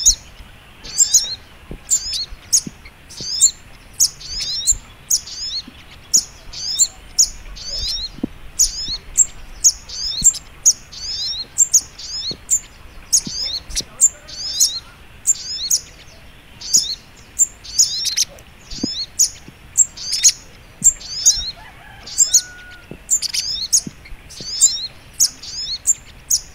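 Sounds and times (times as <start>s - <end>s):
little spiderhunter high twittering: 0.0s - 26.5s
soft hiss: 0.0s - 26.5s
faint low taps: 0.8s - 4.9s, 7.6s - 10.5s, 12.2s - 14.0s, 20.8s - 21.5s, 22.8s - 24.7s.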